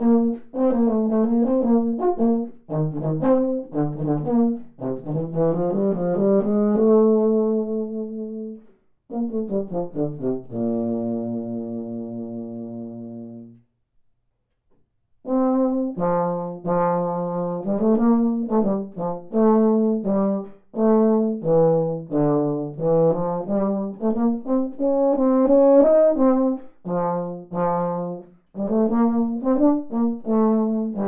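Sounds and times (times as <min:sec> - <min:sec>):
baritone: 0:00.0 - 0:13.6, 0:15.2 - 0:31.0.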